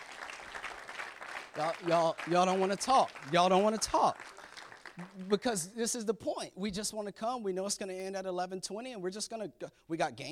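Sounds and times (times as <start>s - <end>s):
crowd clapping: 0.0s - 5.6s
speech: 1.6s - 4.4s, 5.0s - 10.2s.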